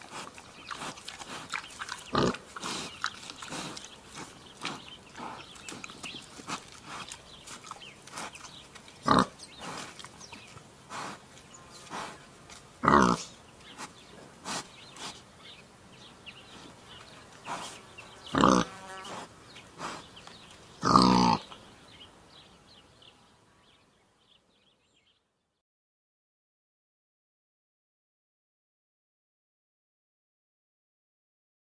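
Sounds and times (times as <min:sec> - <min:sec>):
wild boar: 0:00.0 - 0:15.3, 0:16.4 - 0:21.6.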